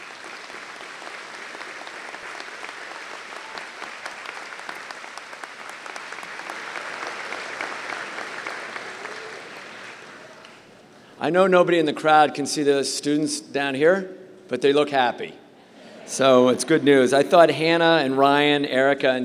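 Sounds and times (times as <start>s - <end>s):
round of applause: 0.0s - 10.7s
speech: 11.2s - 15.4s, 16.1s - 19.2s.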